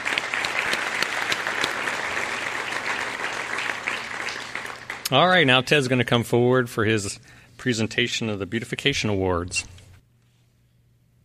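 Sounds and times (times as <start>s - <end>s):
audience applause: 0.0s - 5.5s
speech: 5.1s - 9.8s.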